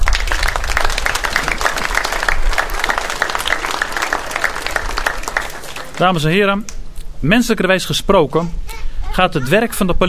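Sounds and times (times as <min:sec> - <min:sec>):
audience applause: 0:00.0 - 0:06.5
speech: 0:06.0 - 0:10.0.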